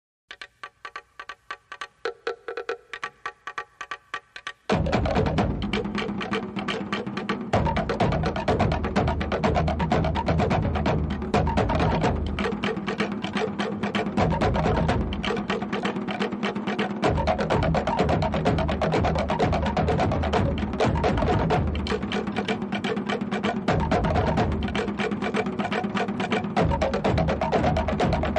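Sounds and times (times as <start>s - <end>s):
Tahitian drums: 0.4s - 28.3s.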